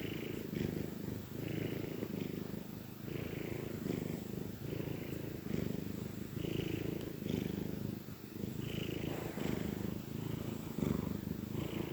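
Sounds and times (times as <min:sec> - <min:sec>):
domestic cat purring: 0:00.0 - 0:11.9.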